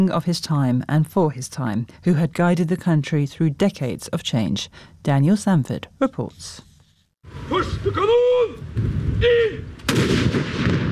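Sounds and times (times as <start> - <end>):
speech: 0.0 - 10.6
cannon salute fired over Oslo: 9.8 - 10.9.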